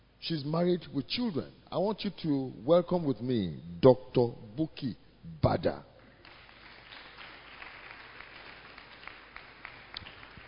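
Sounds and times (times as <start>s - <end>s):
speech: 0.2s - 5.9s
audience clapping: 6.0s - 10.4s.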